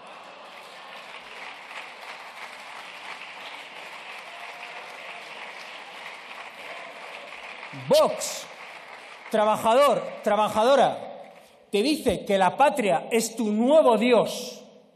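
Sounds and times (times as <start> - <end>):
crowd applause: 0.0 - 11.5
speech: 7.7 - 8.5, 9.3 - 11.1, 11.7 - 14.6.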